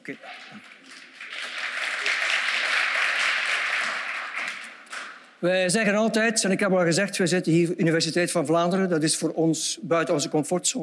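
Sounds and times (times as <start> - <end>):
audience applause for the pianists: 0.0 - 5.3
speech: 0.1 - 0.8, 5.4 - 10.8.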